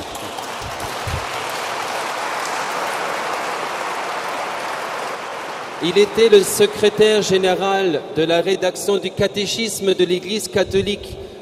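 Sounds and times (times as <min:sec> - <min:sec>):
audience applause: 0:00.0 - 0:07.4
speech: 0:05.8 - 0:11.2.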